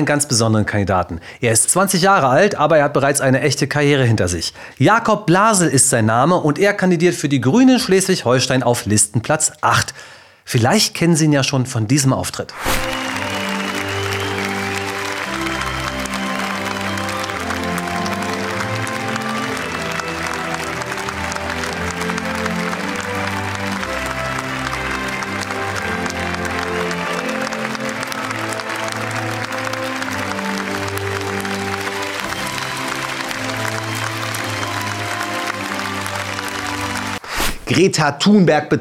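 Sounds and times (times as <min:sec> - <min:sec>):
speech: 0:00.0 - 0:13.4, 0:37.8 - 0:38.7
audience cheering: 0:12.6 - 0:37.9.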